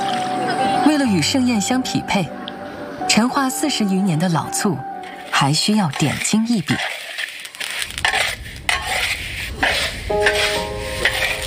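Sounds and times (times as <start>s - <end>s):
speech: 1.1s - 2.4s, 3.2s - 7.0s, 10.1s - 10.7s
repeated scraping strokes in a pan: 5.0s - 11.4s
sesame seeds being stir-fried in a pan: 5.2s - 11.4s.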